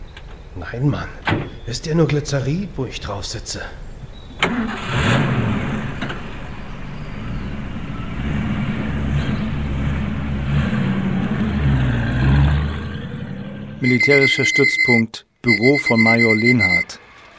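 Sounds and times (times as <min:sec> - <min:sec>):
speech: 0:00.6 - 0:05.2, 0:13.8 - 0:17.1
truck engine starting and driving off: 0:04.3 - 0:14.5.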